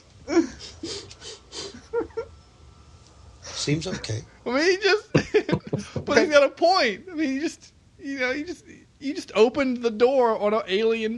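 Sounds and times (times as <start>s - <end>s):
man sniffing the air: 0.5s - 1.9s
speech: 3.7s - 5.1s, 6.1s - 11.1s
laughter: 5.2s - 6.3s.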